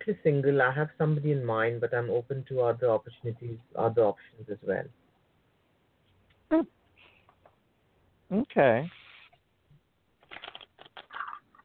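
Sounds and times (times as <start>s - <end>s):
speech: 0.0s - 5.0s, 6.5s - 6.8s, 8.3s - 9.0s
playing cards being handled with soft shuffling rustles: 10.2s - 11.6s.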